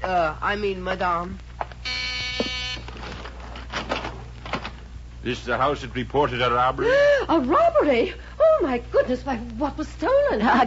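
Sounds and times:
speech: 0.1s - 1.5s, 5.2s - 10.6s
front door buzzer: 1.8s - 3.2s.

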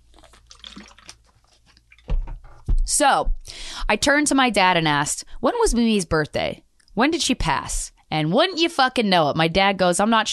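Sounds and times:
person drinking water: 0.0s - 2.1s
speech: 2.9s - 10.3s.

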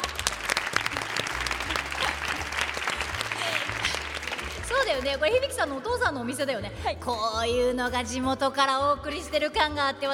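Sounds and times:
laughter: 0.0s - 4.6s
audience applause: 0.0s - 5.1s
speech: 4.9s - 10.1s.

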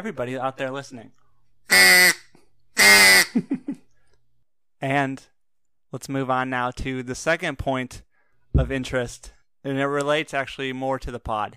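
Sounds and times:
speech: 0.0s - 2.1s, 3.3s - 3.9s, 4.8s - 5.3s, 5.9s - 11.5s
duck call quacking: 1.7s - 3.4s.

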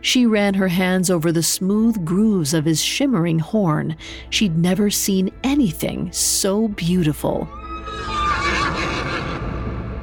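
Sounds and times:
speech: 0.0s - 8.1s
horse-like whinny voiced for a unicorn: 7.7s - 10.0s.

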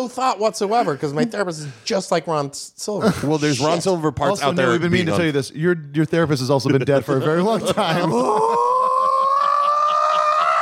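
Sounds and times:
speech: 0.0s - 8.6s
laughter: 6.7s - 10.6s
person screaming into the microphone: 8.1s - 10.6s.

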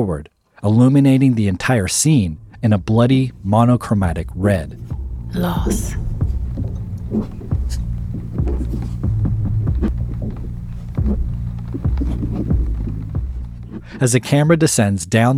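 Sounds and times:
speech: 0.0s - 7.8s, 14.0s - 15.3s
untraceable whooshing: 1.7s - 14.1s
throbbing heartbeat-like bass: 2.1s - 14.0s
footsteps: 2.4s - 14.0s
disembodied breathing: 13.8s - 14.0s.

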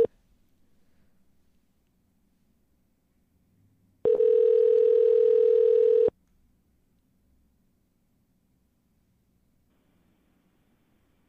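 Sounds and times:
telephone tone while a cold caller dials a second number: 4.0s - 6.1s.

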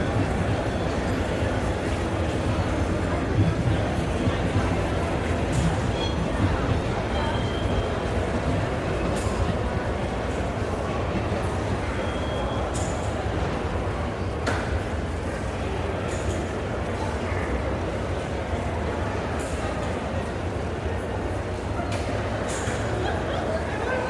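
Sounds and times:
low rumbling from trains: 0.0s - 16.0s
crowd murmur in a train station: 0.0s - 24.0s
laughter: 22.7s - 24.0s.

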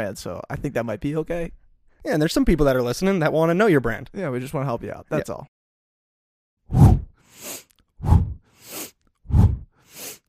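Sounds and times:
speech: 0.0s - 5.6s
forceful breathing exercise, rapid breaths: 7.0s - 10.2s.

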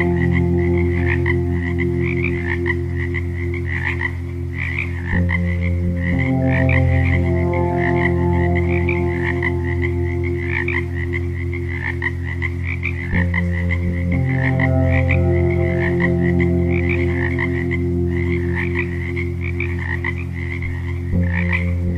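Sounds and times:
frog chorus croaking: 0.0s - 21.9s
soft sustained music tones: 0.0s - 21.9s.

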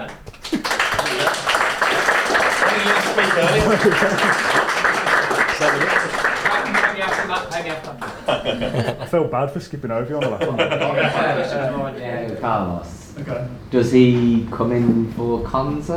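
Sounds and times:
audience round of applause: 0.4s - 8.9s
laughter: 0.4s - 12.0s
speech: 3.2s - 4.9s, 7.0s - 15.9s.

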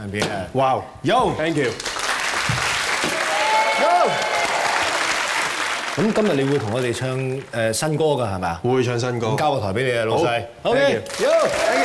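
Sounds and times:
speech: 0.0s - 1.9s, 6.0s - 11.8s
audience applause at a Cantonese stage event: 1.6s - 7.6s, 11.1s - 11.8s.

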